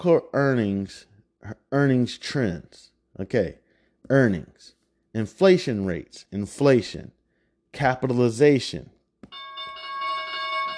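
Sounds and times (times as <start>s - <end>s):
speech: 0.0s - 9.5s
alarm: 9.3s - 10.7s.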